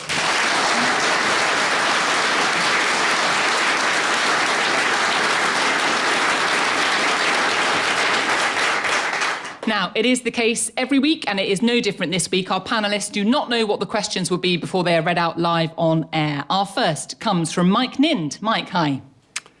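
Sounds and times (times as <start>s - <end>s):
audience applause in Bakewell greeting the Any Questions panel: 0.0s - 9.6s
speech: 9.7s - 19.1s.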